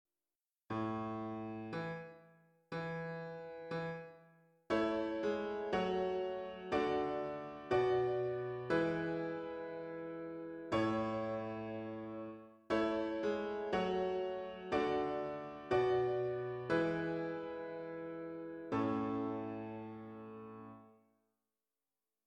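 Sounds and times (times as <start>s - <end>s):
piano: 0.7s - 21.0s.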